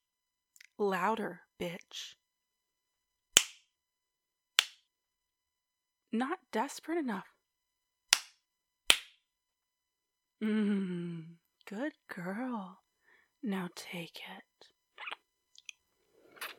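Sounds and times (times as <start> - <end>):
speech: 0.8 - 2.2, 6.1 - 7.3, 10.4 - 12.8, 13.4 - 14.5
slapping on skin: 3.3 - 3.7, 4.6 - 4.9, 8.1 - 9.2.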